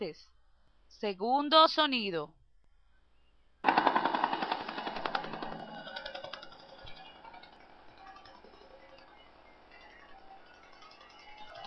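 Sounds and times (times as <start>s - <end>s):
speech: 0.0s - 0.4s, 1.0s - 2.4s
helicopter: 3.6s - 11.6s.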